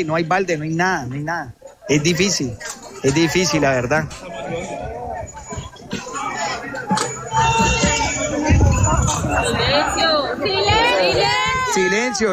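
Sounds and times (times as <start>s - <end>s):
speech: 0.0s - 4.7s, 9.1s - 12.3s
crowd of agitated voices hubbub: 0.0s - 12.3s
people shouting urgent calls: 5.5s - 12.3s.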